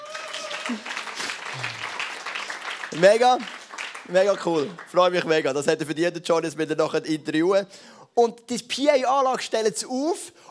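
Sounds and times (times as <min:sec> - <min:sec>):
audience applause: 0:00.0 - 0:05.4
speech: 0:00.7 - 0:01.0, 0:02.9 - 0:10.4.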